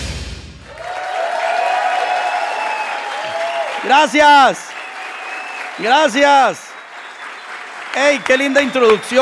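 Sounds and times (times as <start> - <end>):
audience applause: 0.7 - 9.2
speech: 3.9 - 4.8, 5.8 - 6.7, 7.9 - 9.2.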